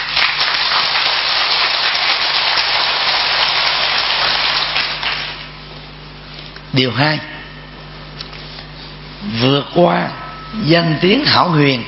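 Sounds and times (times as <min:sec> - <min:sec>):
audience applause: 0:00.0 - 0:05.5
speech: 0:06.8 - 0:07.4, 0:09.2 - 0:11.8.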